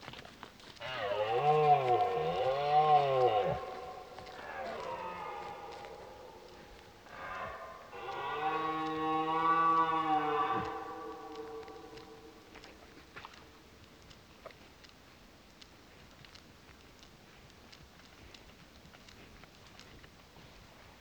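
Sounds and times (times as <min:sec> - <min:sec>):
red deer roaring: 0:00.8 - 0:12.7.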